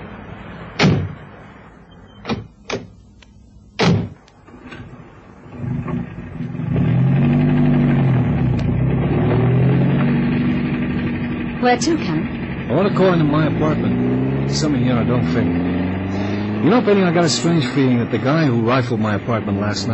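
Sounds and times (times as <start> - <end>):
car door slams: 0.8 - 1.3, 2.2 - 2.9, 3.8 - 4.2
car engine driving off on icy road: 3.8 - 19.9
speech: 11.7 - 12.1, 12.8 - 15.7, 16.6 - 19.9.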